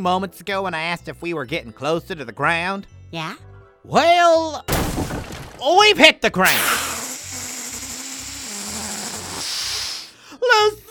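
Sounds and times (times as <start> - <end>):
speech: 0.0 - 6.9, 10.5 - 10.8
air hissing out of a deflating hot air balloon: 6.4 - 10.2.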